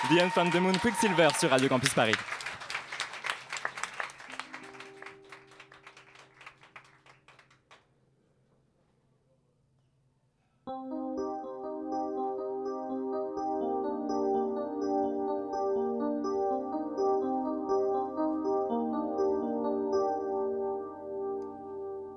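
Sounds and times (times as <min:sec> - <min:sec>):
speech: 0:00.0 - 0:02.4
audience applause: 0:00.0 - 0:07.8
sustained musical tone with harmonics: 0:04.3 - 0:06.7, 0:10.7 - 0:22.1.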